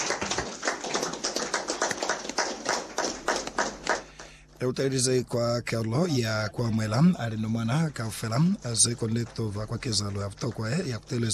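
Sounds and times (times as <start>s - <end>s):
audience clapping hands: 0.0s - 4.4s, 8.3s - 11.3s
speech: 4.6s - 11.3s.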